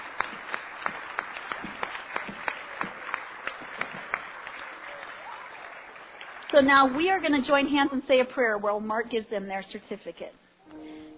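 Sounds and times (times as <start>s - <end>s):
congregation clapping: 0.0s - 7.8s
speech: 6.5s - 10.4s.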